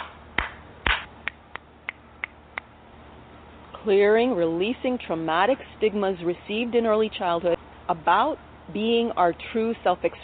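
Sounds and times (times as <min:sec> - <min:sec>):
hand clapping: 0:00.0 - 0:02.7
speech: 0:03.8 - 0:10.2.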